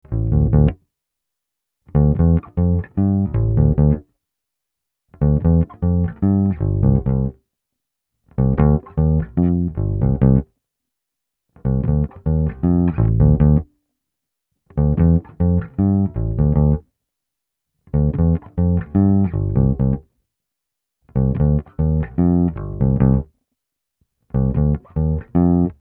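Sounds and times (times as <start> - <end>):
bass: 0.0 - 0.9, 1.9 - 4.2, 5.1 - 7.5, 8.3 - 10.6, 11.6 - 13.8, 14.7 - 17.0, 17.8 - 20.2, 21.0 - 23.4, 24.2 - 25.8.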